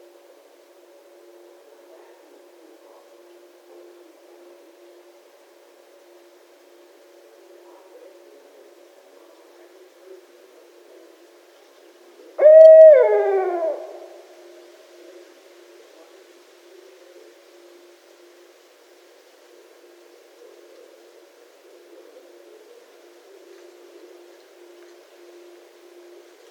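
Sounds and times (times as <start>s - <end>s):
barred owl hooting: 12.2s - 15.3s, 19.5s - 26.5s.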